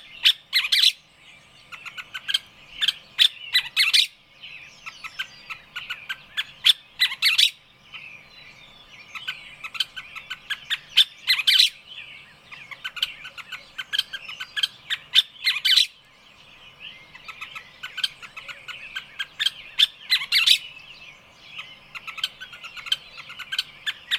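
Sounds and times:
loud harsh bird squawks: 0:00.0 - 0:01.0, 0:01.7 - 0:04.2, 0:04.9 - 0:07.6, 0:09.2 - 0:11.8, 0:12.5 - 0:16.0, 0:17.2 - 0:20.7.

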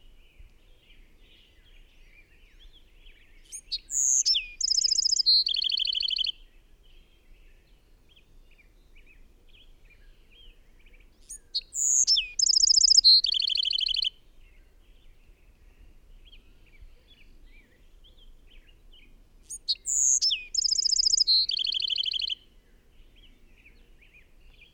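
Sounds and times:
bird song with trill: 0:00.0 - 0:24.7
soft background chirps: 0:03.4 - 0:06.4, 0:10.0 - 0:18.2, 0:18.8 - 0:22.4.

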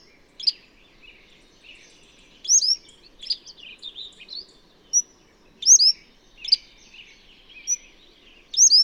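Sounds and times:
bird twittering song: 0:00.0 - 0:08.8.

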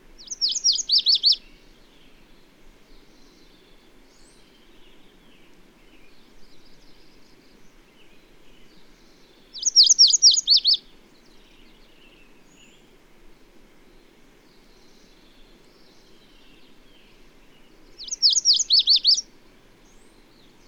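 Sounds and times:
bird song of rapid high sweeping notes: 0:00.2 - 0:01.4, 0:09.6 - 0:10.8, 0:18.0 - 0:19.2.

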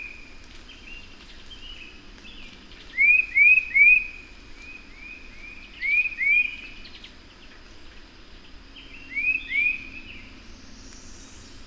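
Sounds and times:
bird singing short rising whistled notes: 0:03.0 - 0:04.1, 0:05.8 - 0:06.6, 0:09.0 - 0:10.1.

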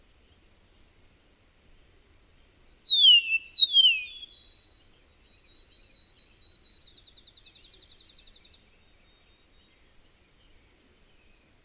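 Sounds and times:
bird song with whistles and trill: 0:02.6 - 0:11.6.

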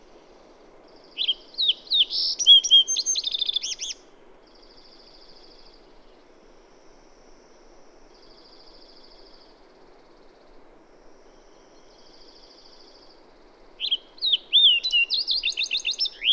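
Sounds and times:
bird song with whistled slurs and trilled phrases: 0:00.9 - 0:06.8, 0:11.3 - 0:13.2, 0:13.8 - 0:16.3.

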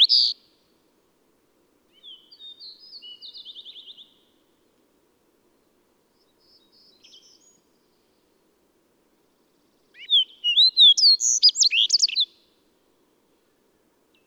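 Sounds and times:
bird song: 0:00.0 - 0:00.4, 0:01.9 - 0:04.4, 0:06.2 - 0:08.3, 0:09.9 - 0:12.5.

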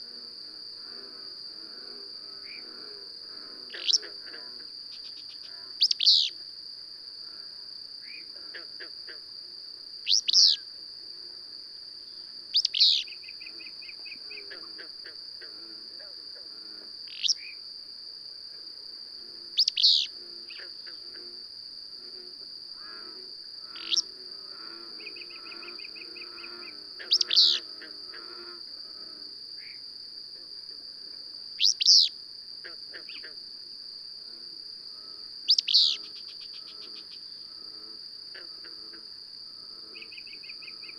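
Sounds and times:
high insect drone: 0:00.0 - 0:40.9
bird song: 0:05.0 - 0:06.4, 0:10.1 - 0:10.6, 0:12.6 - 0:14.1, 0:19.6 - 0:20.1, 0:27.1 - 0:27.6, 0:31.6 - 0:32.1, 0:35.5 - 0:37.1.

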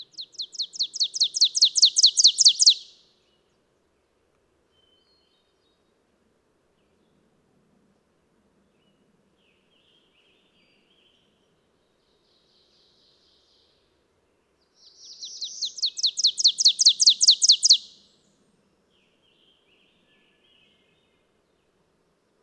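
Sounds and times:
bird singing high downslurred chips: 0:00.2 - 0:02.9, 0:15.2 - 0:18.0.

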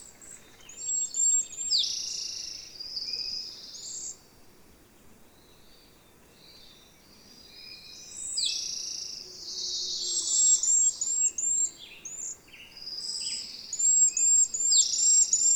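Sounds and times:
bird singing high whistled notes: 0:00.2 - 0:04.2, 0:08.0 - 0:15.5.

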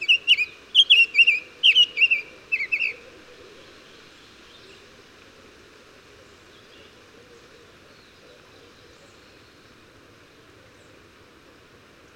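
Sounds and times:
bird song: 0:00.0 - 0:03.0, 0:03.8 - 0:04.8, 0:06.2 - 0:09.8.

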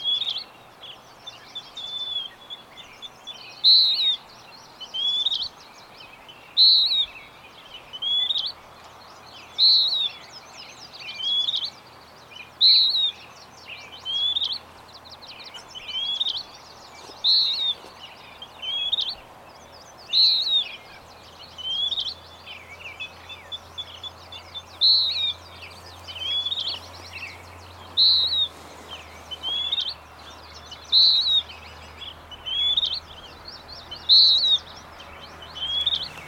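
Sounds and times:
bird high whistled song: 0:01.3 - 0:08.6, 0:09.3 - 0:36.2.

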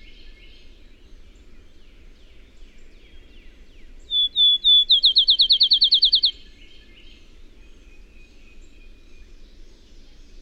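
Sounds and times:
bird song with drawn-out whistles and fast trill: 0:04.1 - 0:06.4.

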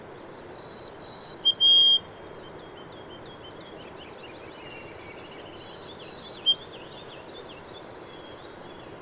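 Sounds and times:
bird whistling: 0:00.1 - 0:02.0, 0:05.0 - 0:06.6, 0:07.6 - 0:08.9.

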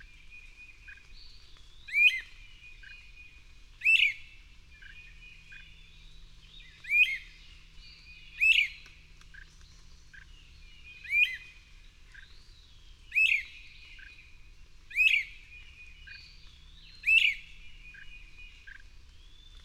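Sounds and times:
bird song of high whistled phrases: 0:01.7 - 0:08.8, 0:10.2 - 0:12.4, 0:13.0 - 0:14.2, 0:14.9 - 0:19.6.

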